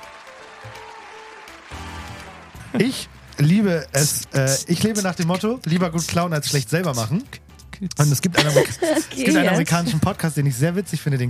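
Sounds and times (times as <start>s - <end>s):
audience applause welcoming a quiz show host: 0.0s - 5.0s
speech: 2.7s - 11.2s
laughter: 8.0s - 10.2s.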